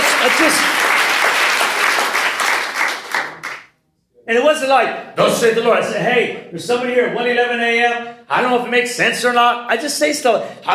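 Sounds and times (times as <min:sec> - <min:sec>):
audience hand clap: 0:00.0 - 0:03.6
speech: 0:00.2 - 0:01.0, 0:04.3 - 0:10.7.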